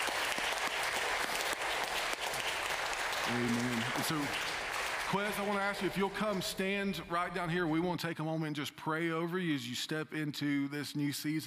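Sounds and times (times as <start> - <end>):
audience applause: 0.0 - 7.6
speech: 3.3 - 11.4.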